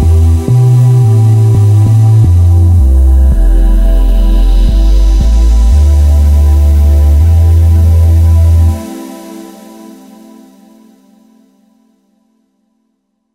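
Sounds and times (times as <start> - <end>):
deep synth bass on a Korg TR-Rack: 0.0 - 8.9
synth pad on a Korg TR-Rack: 0.0 - 11.4.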